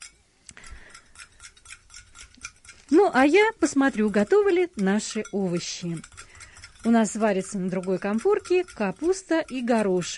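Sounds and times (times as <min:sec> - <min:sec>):
hand whisk beating a cold paste into boiling milk: 0:00.0 - 0:10.1
speech: 0:02.9 - 0:06.1, 0:06.8 - 0:10.1.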